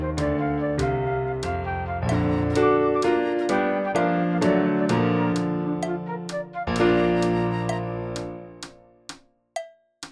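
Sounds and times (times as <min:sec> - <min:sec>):
fast flute backing track: 0:00.0 - 0:08.6
fast piano backing track: 0:00.0 - 0:09.1.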